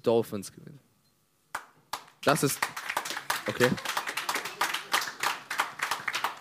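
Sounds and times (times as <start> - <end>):
speech: 0.0 - 0.8, 2.2 - 2.8, 3.4 - 3.9
weak pity clapping: 1.5 - 6.3.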